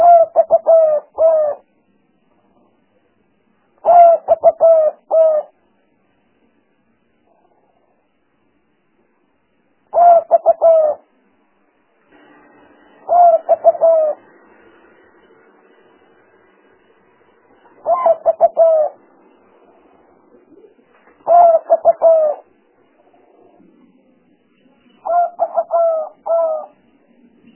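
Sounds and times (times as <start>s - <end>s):
Spotted dove cooing: 0.0s - 1.7s, 3.8s - 5.6s, 9.9s - 11.1s, 13.0s - 14.3s, 17.7s - 19.1s, 20.3s - 23.7s, 25.0s - 26.9s.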